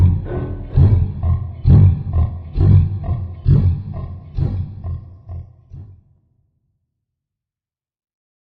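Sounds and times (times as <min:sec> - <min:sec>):
slowed reverb music: 0:00.0 - 0:05.0.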